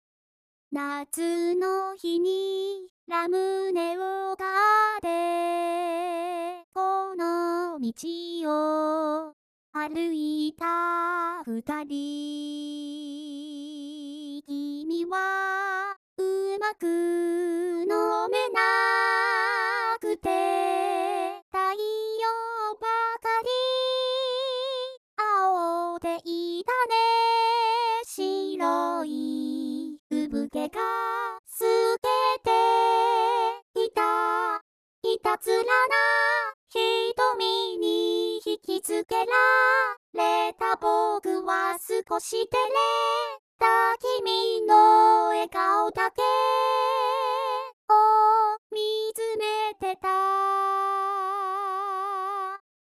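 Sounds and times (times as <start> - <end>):
vocals: 0.7 - 52.6.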